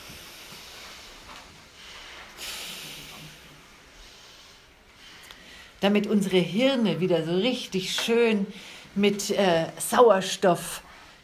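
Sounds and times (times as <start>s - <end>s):
slow deep breaths: 0.0s - 5.8s, 8.5s - 9.0s
speech: 5.8s - 10.8s.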